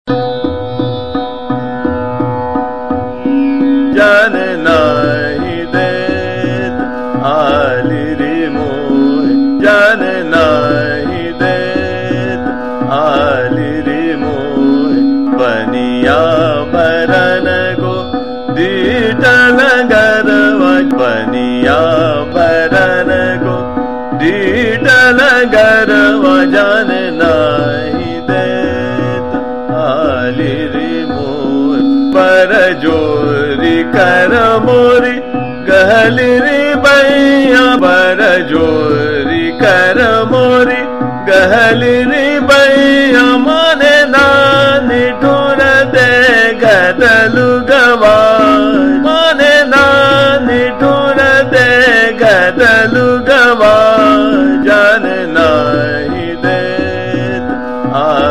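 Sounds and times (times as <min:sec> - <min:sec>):
chota khyal vocal in teental rhythm: 0:00.1 - 0:58.2.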